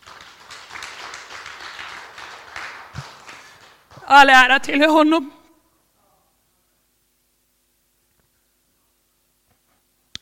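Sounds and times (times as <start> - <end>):
audience applause: 0.0 - 4.1
speech: 4.1 - 5.4.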